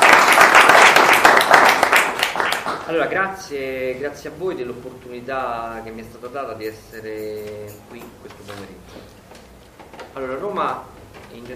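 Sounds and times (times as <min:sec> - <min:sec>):
audience applause at a talk on the Jubilee: 0:00.0 - 0:03.0
speech: 0:02.9 - 0:09.4, 0:10.1 - 0:11.5.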